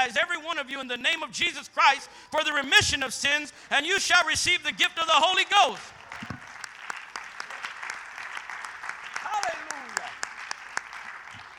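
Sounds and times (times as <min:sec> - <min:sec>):
speech: 0:00.0 - 0:06.0
crowd clapping: 0:05.6 - 0:11.5.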